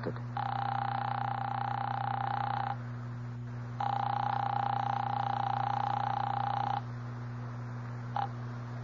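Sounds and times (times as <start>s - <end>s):
low electrical hum: 0.0s - 8.8s
telephone ringback tone over the line: 0.4s - 2.8s, 3.8s - 6.9s.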